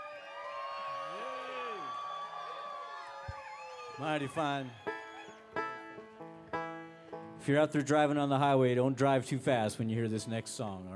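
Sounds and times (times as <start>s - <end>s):
audience yelling loudly: 0.0s - 5.5s
speech: 4.0s - 4.9s, 7.4s - 10.9s.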